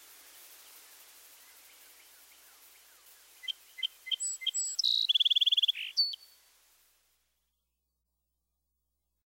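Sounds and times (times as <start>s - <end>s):
red-winged blackbird calls: 2.4s - 6.4s.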